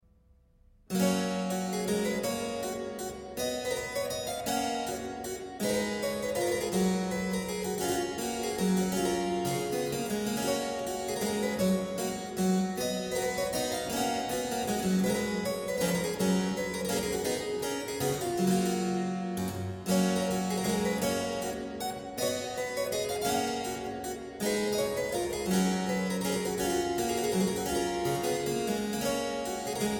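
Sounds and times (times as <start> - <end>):
minuet: 0.9 - 29.9.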